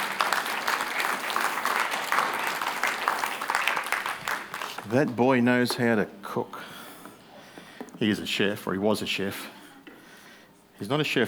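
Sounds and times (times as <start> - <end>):
audience clapping for the chef: 0.0 - 5.9
speech: 4.9 - 6.8, 8.0 - 9.6, 10.8 - 11.2.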